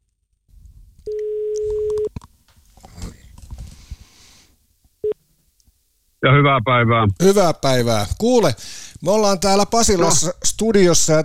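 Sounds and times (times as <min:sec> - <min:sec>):
telephone line tones of outgoing call: 0:01.1 - 0:02.1
speech: 0:06.2 - 0:11.2.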